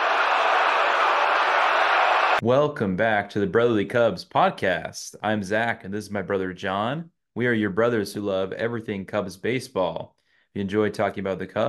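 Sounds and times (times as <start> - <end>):
baseball stadium crowd cheering home run: 0.0 - 2.4
speech: 2.4 - 11.6.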